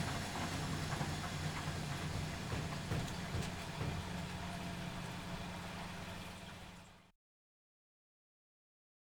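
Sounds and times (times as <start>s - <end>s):
washing machine: 0.0s - 7.1s.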